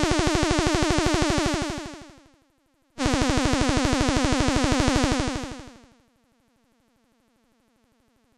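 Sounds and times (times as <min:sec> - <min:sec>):
analogue sound synthesizer sounds: 0:00.0 - 0:02.3, 0:03.0 - 0:05.9.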